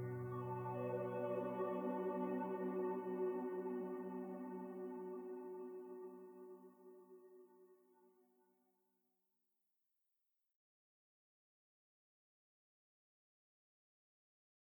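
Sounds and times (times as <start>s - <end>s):
piano: 0.0s - 6.8s
ambience: 0.0s - 6.9s.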